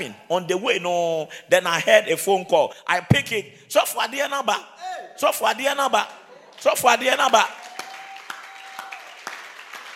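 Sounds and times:
speech: 0:00.0 - 0:07.6
audience clapping in a steady rhythm: 0:05.6 - 0:09.9.

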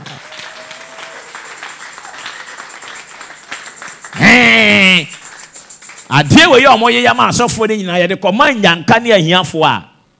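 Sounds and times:
crowd clapping: 0:00.0 - 0:07.5
speech: 0:04.3 - 0:05.1, 0:06.1 - 0:09.9.

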